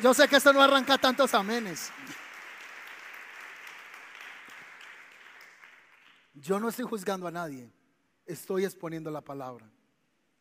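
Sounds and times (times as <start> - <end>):
speech: 0.0 - 2.2, 6.4 - 9.8
audience applause: 0.0 - 6.2.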